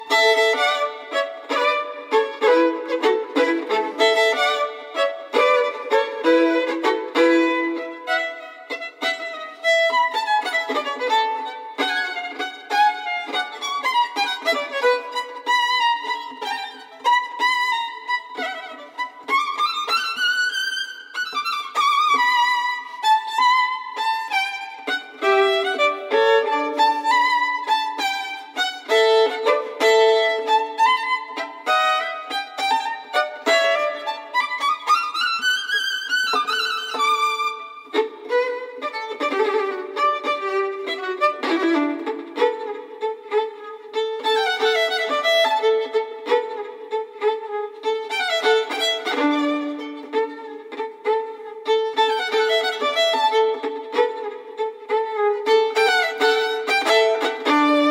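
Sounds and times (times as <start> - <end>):
solo violin sonata in D major, allegro: 0.0 - 57.8.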